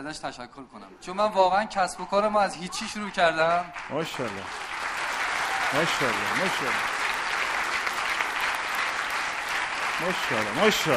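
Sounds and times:
speech: 0.0 - 4.8, 5.7 - 6.9, 10.0 - 10.9
audience applause: 2.9 - 10.9.

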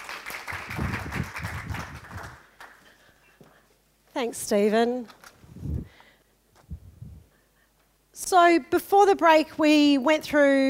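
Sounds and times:
audience applause: 0.0 - 2.9
speech: 4.2 - 5.2, 8.3 - 10.6.

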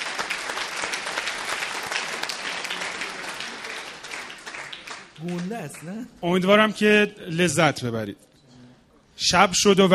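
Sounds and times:
audience applause at a poetry performance: 0.0 - 6.1
speech: 5.2 - 8.3, 9.2 - 9.9.

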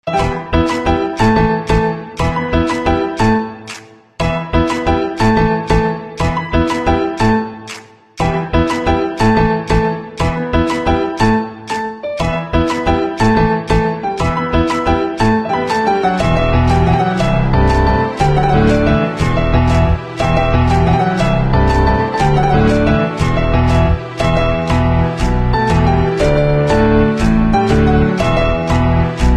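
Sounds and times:
instrumental piano ringtone: 0.1 - 3.6, 4.2 - 7.6, 8.2 - 29.3.

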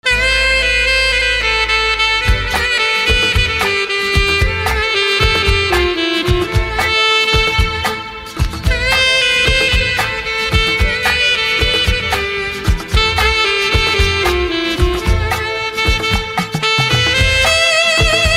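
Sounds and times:
saxophone: 0.0 - 18.3.

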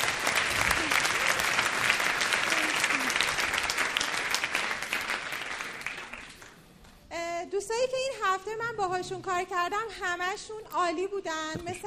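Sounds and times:
audience applause: 0.0 - 6.6
speech: 7.7 - 11.8.

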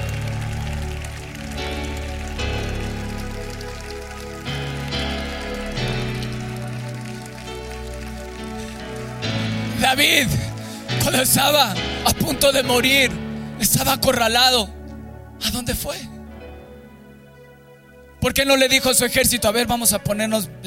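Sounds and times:
audience applauding: 0.0 - 12.6
speech: 9.9 - 10.4, 11.1 - 14.8, 15.4 - 16.1, 18.2 - 20.6.

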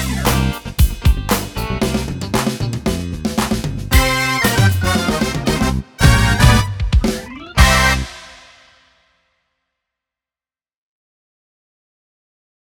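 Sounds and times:
blues music: 0.0 - 8.7.

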